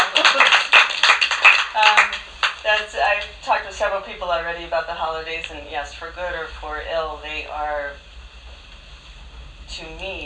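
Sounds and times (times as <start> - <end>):
audience applause at a gathering: 0.0 - 2.6
speech: 3.9 - 8.1, 9.7 - 10.2.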